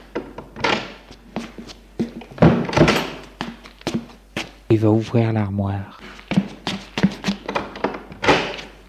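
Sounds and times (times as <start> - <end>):
bedroom door opening and closing: 0.1 - 1.0, 2.3 - 3.3, 7.4 - 8.7
speech: 4.8 - 6.0.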